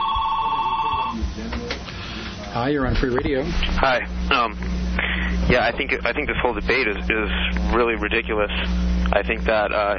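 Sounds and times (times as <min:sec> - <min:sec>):
telephone ringing with an incoming call to a radio call-in show: 0:00.0 - 0:01.2
faint low murmur: 0:00.0 - 0:09.9
speech: 0:02.6 - 0:04.9, 0:05.5 - 0:09.9.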